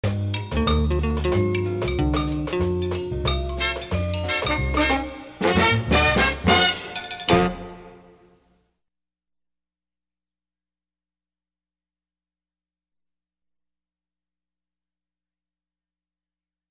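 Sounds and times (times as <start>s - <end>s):
swing and tango music: 0.0s - 8.3s.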